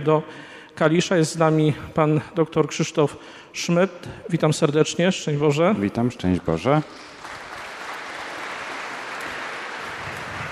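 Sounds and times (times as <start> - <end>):
speech: 0.0 - 7.1
audience applause: 6.9 - 10.5.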